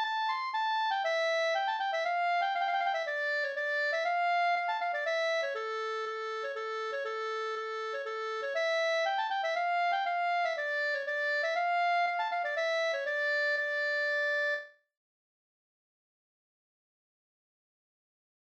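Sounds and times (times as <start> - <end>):
bridal polska dance tune from Alvdalen: 0.0 - 14.6.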